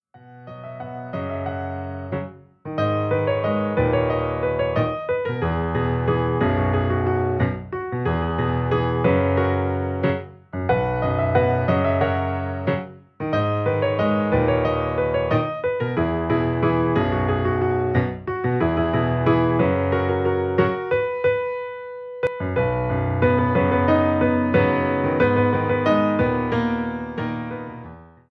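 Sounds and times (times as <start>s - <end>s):
piano ringtone: 0.2s - 27.9s.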